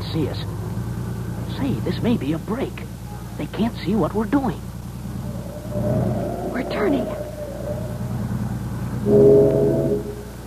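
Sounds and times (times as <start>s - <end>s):
speech: 0.2s - 0.7s, 1.6s - 4.7s, 5.7s - 7.2s, 9.0s - 9.6s
steamship whistle: 5.1s - 10.4s.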